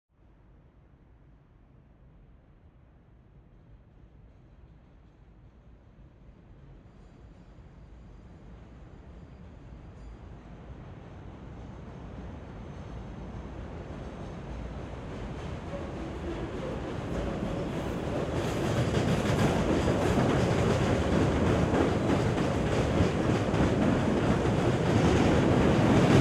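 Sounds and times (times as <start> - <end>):
L train passing at moderate speed heard from under the tracks: 3.4 - 26.2.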